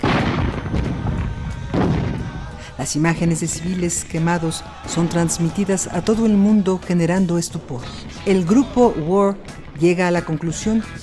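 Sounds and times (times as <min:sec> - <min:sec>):
napalm bomb explosion: 0:00.0 - 0:02.8
speech: 0:02.8 - 0:11.0.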